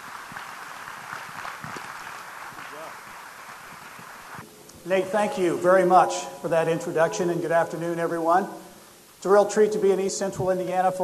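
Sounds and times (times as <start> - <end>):
audience applause: 0.0 - 4.4
speech: 4.8 - 8.6, 9.2 - 11.0.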